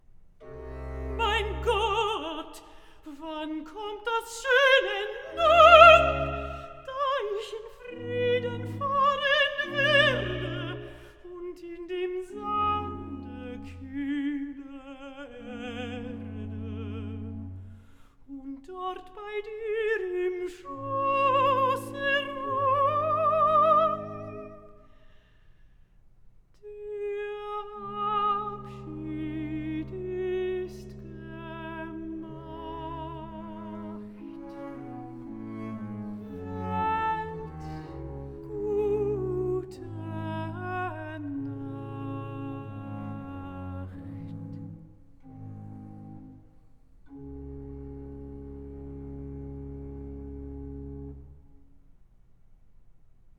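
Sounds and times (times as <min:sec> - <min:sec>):
cantata recitative singing: 0:00.9 - 0:17.6, 0:18.3 - 0:24.8, 0:26.6 - 0:44.8.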